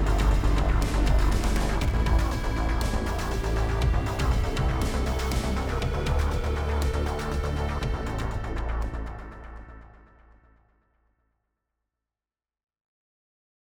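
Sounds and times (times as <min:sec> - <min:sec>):
epic funk music: 0:00.0 - 0:09.6.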